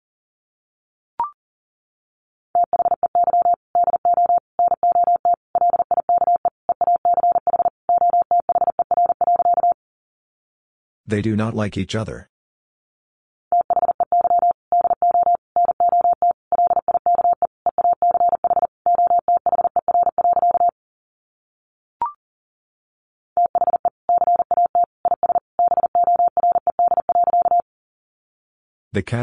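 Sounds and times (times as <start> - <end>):
Morse code tones at 40 words per minute: 2.6 - 9.8, 13.5 - 20.7, 23.4 - 27.6
speech: 11.1 - 12.3, 29.0 - 29.2.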